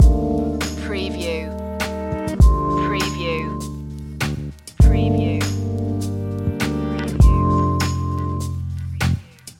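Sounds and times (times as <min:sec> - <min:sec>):
chilled music loop: 0:00.0 - 0:09.5.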